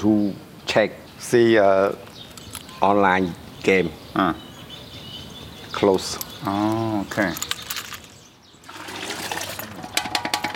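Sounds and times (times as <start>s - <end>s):
speech: 0.0s - 2.1s, 2.8s - 4.5s, 5.8s - 7.5s
man washing pots: 8.6s - 10.5s.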